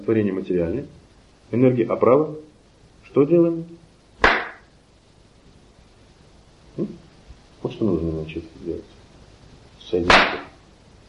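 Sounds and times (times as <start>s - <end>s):
speech: 0.0s - 2.5s, 3.1s - 4.3s, 7.8s - 9.0s, 9.9s - 10.4s
sharp hand clap: 4.2s - 4.7s, 10.1s - 10.6s.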